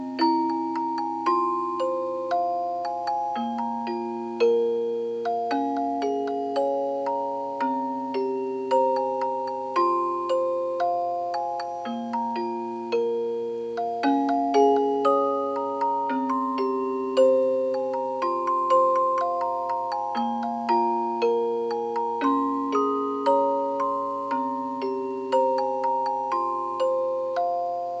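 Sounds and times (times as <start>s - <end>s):
music box: 0.0s - 27.9s.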